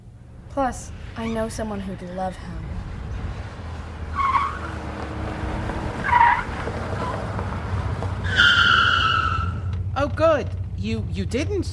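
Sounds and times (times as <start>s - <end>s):
car engine rumble: 0.0s - 11.7s
speech: 0.6s - 2.9s, 10.0s - 11.7s
car tires squealing: 3.0s - 10.7s.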